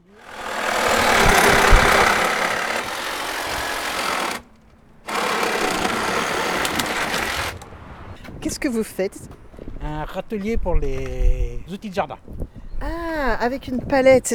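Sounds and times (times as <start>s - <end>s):
saw working: 0.0s - 7.8s
cordless screwdriver working: 0.1s - 4.4s, 5.1s - 7.6s
speech: 8.6s - 14.3s.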